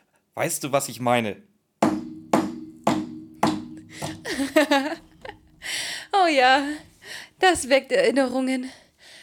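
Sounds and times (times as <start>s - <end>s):
speech: 0.4s - 1.5s, 6.3s - 8.8s
hammer striking metal at a scrapyard: 1.8s - 4.3s
laughter: 4.2s - 5.5s.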